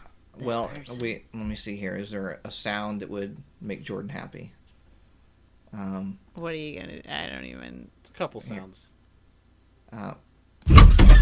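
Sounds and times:
speech: 0:00.5 - 0:04.6, 0:05.7 - 0:08.9, 0:09.9 - 0:11.1
squeaky door: 0:10.7 - 0:11.1.

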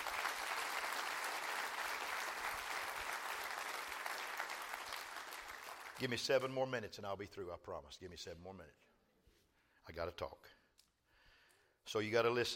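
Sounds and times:
audience clapping hands: 0:00.0 - 0:06.5
speech: 0:06.0 - 0:08.9, 0:09.9 - 0:10.6, 0:11.9 - 0:12.5.

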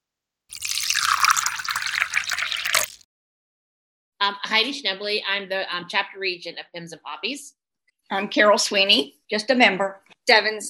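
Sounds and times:
tea pouring into a cup: 0:00.5 - 0:03.0
speech: 0:04.2 - 0:10.6.

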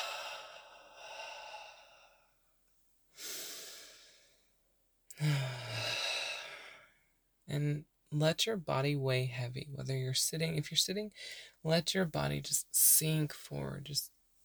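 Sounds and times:
slow deep breathing in through the nose and out through the mouth during breathwork meditation: 0:00.0 - 0:02.4, 0:03.2 - 0:04.5, 0:05.1 - 0:07.0
speech: 0:07.5 - 0:14.1.

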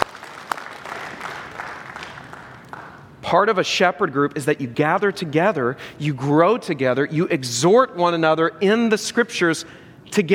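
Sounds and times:
audience clapping: 0:00.0 - 0:03.2
speech: 0:03.3 - 0:10.3.

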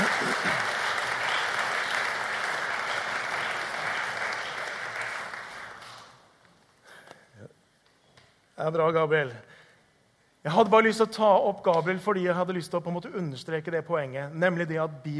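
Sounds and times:
audience applause: 0:00.0 - 0:06.3
speech: 0:08.6 - 0:09.5, 0:10.4 - 0:15.1.

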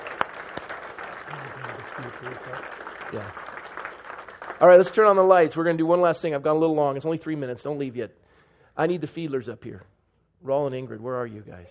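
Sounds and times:
audience applause: 0:00.0 - 0:05.5
speech: 0:02.0 - 0:03.5, 0:04.6 - 0:08.2, 0:08.8 - 0:11.6.

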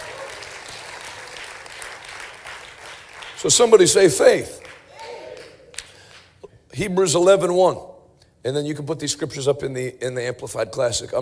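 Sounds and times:
audience hand clapping: 0:00.0 - 0:06.4
speech: 0:03.4 - 0:04.6, 0:06.8 - 0:11.1.

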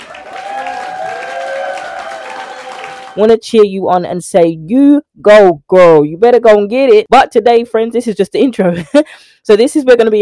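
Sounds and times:
crowd applause sound effect: 0:00.0 - 0:03.2
speech: 0:03.2 - 0:10.2.

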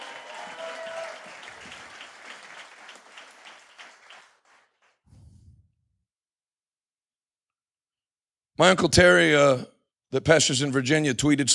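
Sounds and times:
people clapping hands: 0:00.0 - 0:05.1
speech: 0:08.6 - 0:11.5.

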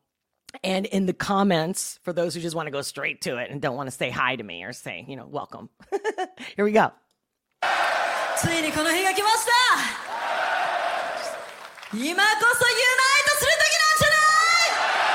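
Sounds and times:
speech: 0:00.6 - 0:07.0, 0:08.4 - 0:09.9, 0:11.9 - 0:13.1
loud crowd cheering, screaming and whooping: 0:07.6 - 0:11.9, 0:14.4 - 0:15.1.

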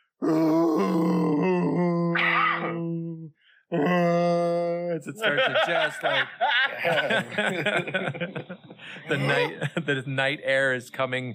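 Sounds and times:
voice imitating a wounded creature howling: 0:00.2 - 0:04.4
speech: 0:05.0 - 0:11.3
laughter: 0:05.2 - 0:10.0.

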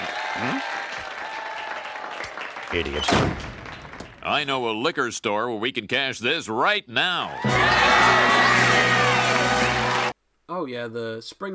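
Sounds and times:
audience applause: 0:00.0 - 0:04.2, 0:07.4 - 0:10.2
speech: 0:02.7 - 0:03.6, 0:04.2 - 0:09.0, 0:10.5 - 0:11.5.

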